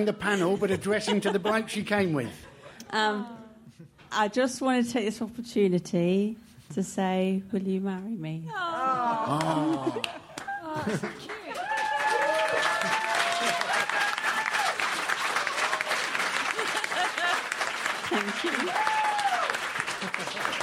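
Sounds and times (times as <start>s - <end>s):
laughter: 0.0s - 2.8s, 8.5s - 11.6s, 16.1s - 19.1s, 19.8s - 20.6s
speech: 0.0s - 10.2s, 10.8s - 11.4s, 18.1s - 19.0s
audience applause and cheering: 9.0s - 20.6s.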